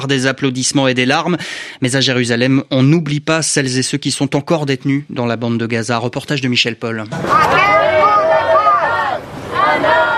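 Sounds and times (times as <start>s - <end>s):
speech: 0.0s - 8.0s
protesters chanting slogans: 7.2s - 10.1s.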